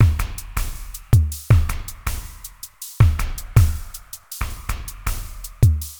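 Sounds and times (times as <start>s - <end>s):
ambient drum loop: 0.0s - 5.9s.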